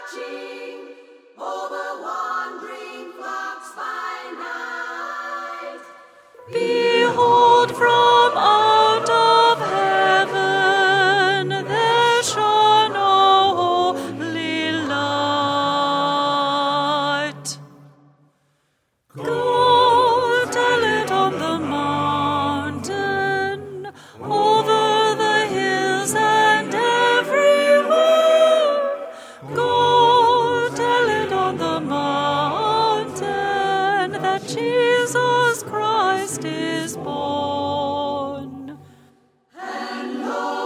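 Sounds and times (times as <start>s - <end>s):
mezzo-soprano singing: 1.4s - 17.7s, 19.2s - 38.8s.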